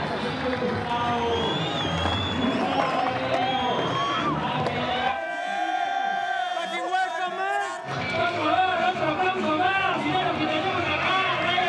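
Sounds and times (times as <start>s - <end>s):
large crowd cheering: 0.0s - 11.6s.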